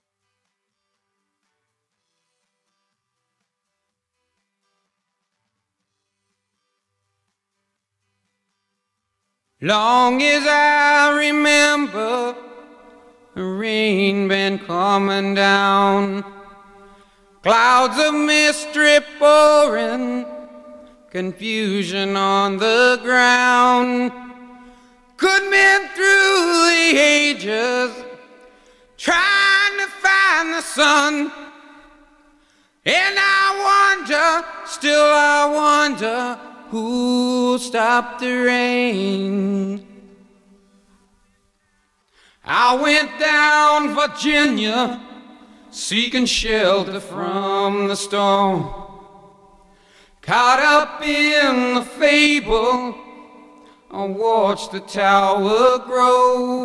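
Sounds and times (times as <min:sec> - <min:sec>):
person singing: 0:09.6 - 0:31.9, 0:32.9 - 0:40.2, 0:42.5 - 0:49.2, 0:50.2 - 0:56.6.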